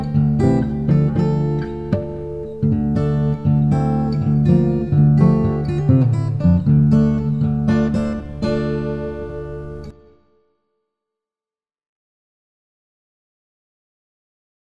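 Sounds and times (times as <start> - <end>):
blues music: 0.0 - 10.1.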